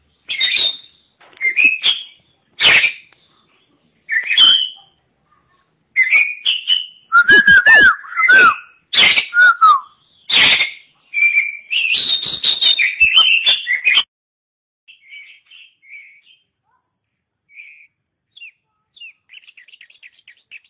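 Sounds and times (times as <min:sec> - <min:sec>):
Oriental magpie-robin singing: 0:00.1 - 0:02.3, 0:06.0 - 0:14.1, 0:14.9 - 0:16.6, 0:17.5 - 0:20.6.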